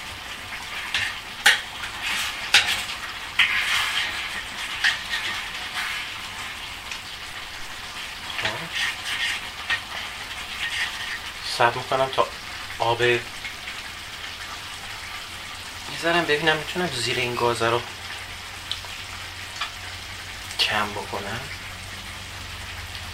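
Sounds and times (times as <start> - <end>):
stirring rice in a pot: 0.5 - 12.4
speech: 11.6 - 13.4, 16.0 - 18.0, 20.8 - 21.6.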